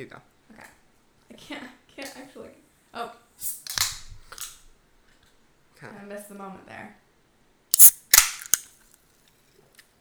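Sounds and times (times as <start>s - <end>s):
speech: 0.0s - 0.7s, 1.3s - 3.6s, 5.8s - 7.0s
drink cans being cracked open: 7.8s - 8.6s
fizzy hisses from drink cans: 7.8s - 8.6s.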